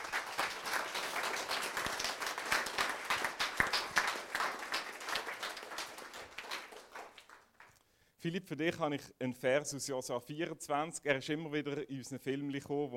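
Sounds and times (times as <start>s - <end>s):
audience applause: 0.0s - 7.7s
speech: 8.2s - 12.9s.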